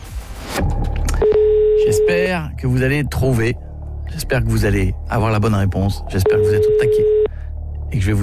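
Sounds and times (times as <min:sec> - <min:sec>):
steady telephone tone during a radio call-in game: 0:01.2 - 0:02.3, 0:06.2 - 0:07.3
speech: 0:02.1 - 0:07.2, 0:07.9 - 0:08.2.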